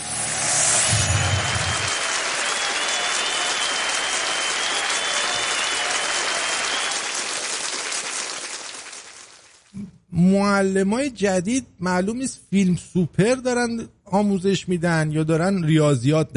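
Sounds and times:
audience clapping and applause: 0.9s - 9.7s
speech: 10.2s - 16.3s.

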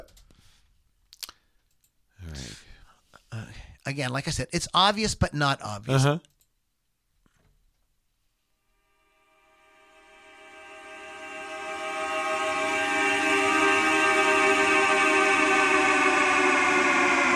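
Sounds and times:
speech: 3.9s - 6.3s
car horn recorded and played backward: 9.2s - 17.2s.

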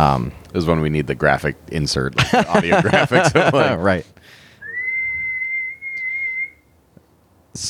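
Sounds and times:
speech: 0.0s - 4.4s
laughter: 2.2s - 4.0s
person whistling a high note imitating a whistling tea kettle: 4.6s - 6.7s.

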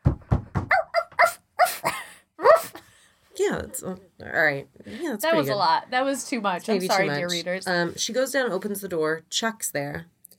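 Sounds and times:
dog barking: 0.7s - 1.8s
speech: 3.5s - 10.2s.

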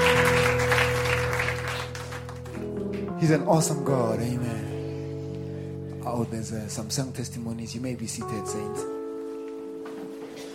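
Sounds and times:
audience hand clapping: 0.0s - 3.1s
speech: 3.2s - 4.7s, 6.1s - 9.0s.

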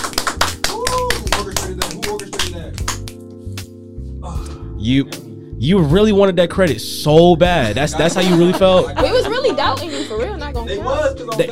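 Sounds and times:
people clapping for a new guest: 0.0s - 3.2s
speech: 4.8s - 11.5s
laughter: 7.8s - 10.6s.

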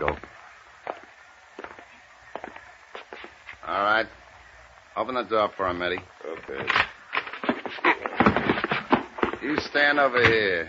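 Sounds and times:
footsteps walking: 0.0s - 3.8s, 5.9s - 10.6s
speech: 3.8s - 4.2s, 5.0s - 6.8s, 9.4s - 10.6s.

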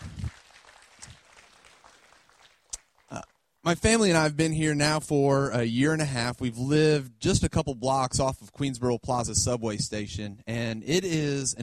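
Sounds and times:
audience applause: 0.0s - 3.4s
speech: 3.1s - 11.6s.

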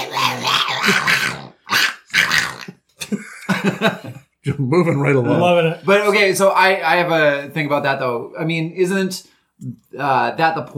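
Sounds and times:
guttural growling voice imitating speech in a made-up Infernal tongue: 0.0s - 2.8s
laughter: 3.0s - 4.2s
speech: 3.8s - 10.7s.

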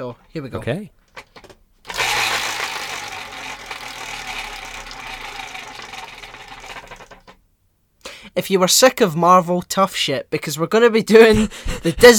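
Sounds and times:
speech: 0.0s - 1.0s, 8.4s - 12.1s
prize wheel spinning: 1.9s - 7.4s.

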